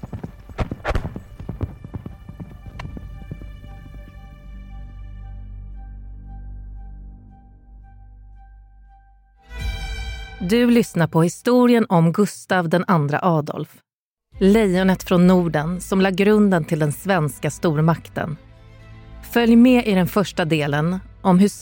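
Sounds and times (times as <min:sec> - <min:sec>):
cavalry horses galloping hooves: 0:00.0 - 0:04.6
speech: 0:10.4 - 0:13.8, 0:14.4 - 0:18.5, 0:19.2 - 0:21.6.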